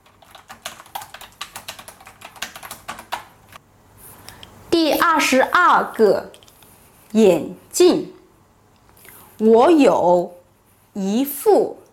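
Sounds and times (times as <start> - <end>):
typing on a computer keyboard: 0.0 - 3.6
speech: 5.1 - 6.4, 7.1 - 8.2, 9.4 - 10.4, 11.0 - 11.8.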